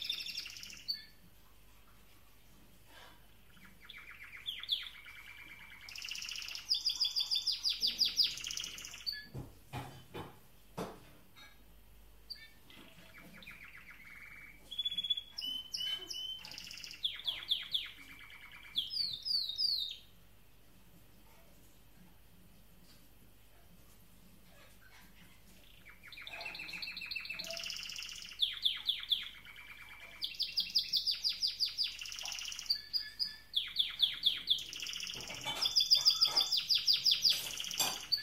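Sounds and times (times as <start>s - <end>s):
canary singing: 0.0s - 1.3s, 3.0s - 9.4s, 12.3s - 20.2s, 24.5s - 38.2s.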